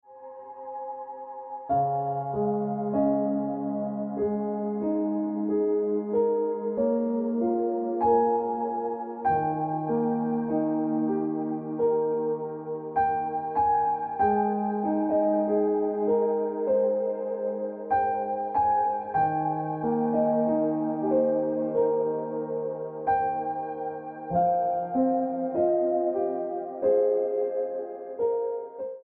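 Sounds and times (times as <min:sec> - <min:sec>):
piano ringtone music: 0:00.1 - 0:29.0.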